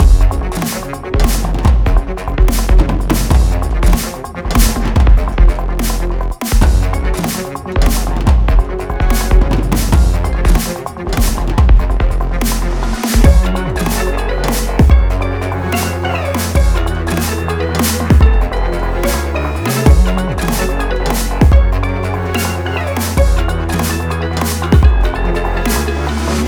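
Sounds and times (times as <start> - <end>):
boss battle game music loop: 0.0 - 26.4.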